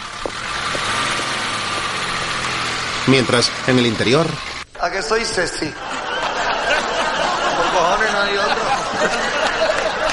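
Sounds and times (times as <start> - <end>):
car engine running: 0.0 - 4.7
speech: 3.1 - 5.9, 7.8 - 9.5
laughter: 5.2 - 10.1.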